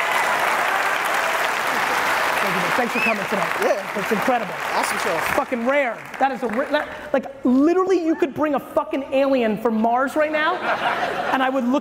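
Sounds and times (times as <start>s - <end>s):
audience applause: 0.0s - 7.0s
speech: 2.4s - 11.8s
laughter: 10.4s - 11.8s.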